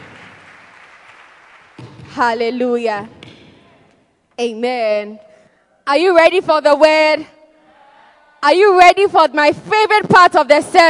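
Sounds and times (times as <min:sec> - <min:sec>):
audience clapping: 0:00.0 - 0:02.1
speech: 0:02.2 - 0:03.2, 0:04.4 - 0:05.3, 0:05.9 - 0:07.4, 0:08.4 - 0:10.8.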